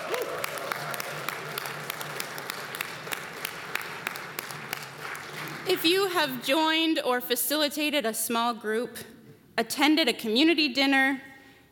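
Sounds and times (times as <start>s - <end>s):
congregation clapping as community members stand to be recognized: 0.0s - 6.0s
speech: 5.7s - 11.3s.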